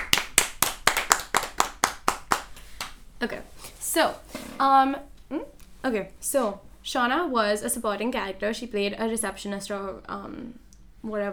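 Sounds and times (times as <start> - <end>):
hand clapping: 0.0 - 3.0
speech: 3.2 - 11.3.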